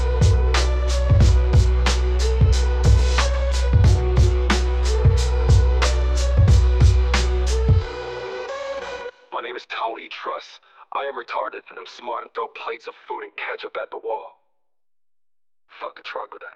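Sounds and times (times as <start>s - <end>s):
rap music: 0.0s - 9.1s.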